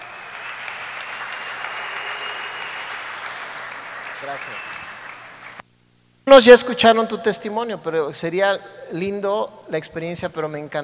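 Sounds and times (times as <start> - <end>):
audience applause: 0.0 - 5.6
speech: 4.2 - 4.8, 6.3 - 10.8.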